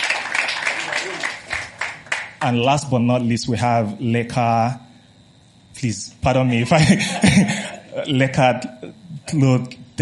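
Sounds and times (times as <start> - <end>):
round of applause: 0.0 - 2.6
laughter: 0.2 - 1.5, 6.3 - 9.0
speech: 2.4 - 4.8, 5.8 - 10.0.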